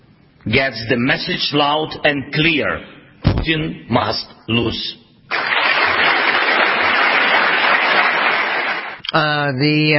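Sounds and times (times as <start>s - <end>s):
speech: 0.4s - 5.0s, 9.1s - 9.9s
respectful audience applause at the National Defense University: 5.3s - 9.0s.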